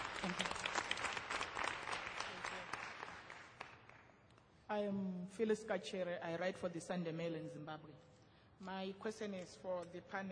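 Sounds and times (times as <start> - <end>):
audience applause: 0.0 - 4.0
speech: 0.2 - 0.6, 4.8 - 10.3.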